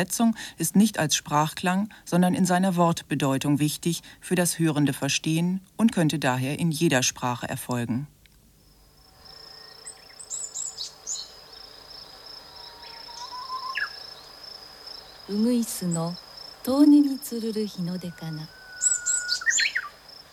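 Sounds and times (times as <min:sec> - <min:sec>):
speech: 0:00.0 - 0:08.2, 0:15.3 - 0:18.6
distant nightingale song: 0:08.1 - 0:20.3.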